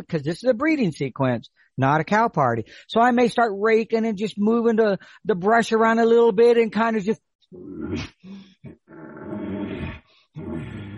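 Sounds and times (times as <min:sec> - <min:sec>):
speech: 0:00.0 - 0:09.4
person imitating a bull elk's growly pants call: 0:07.6 - 0:10.9.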